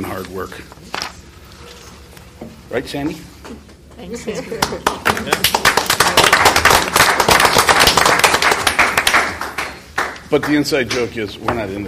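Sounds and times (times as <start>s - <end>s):
speech: 0.2s - 1.1s, 2.7s - 7.1s, 10.3s - 11.8s
clapping: 4.6s - 11.0s.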